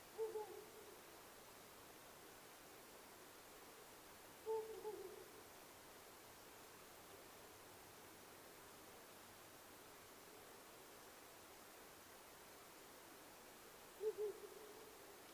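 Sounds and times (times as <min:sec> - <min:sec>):
owl giving low soft hoots: 0:00.1 - 0:01.0, 0:04.4 - 0:05.4, 0:13.9 - 0:15.2.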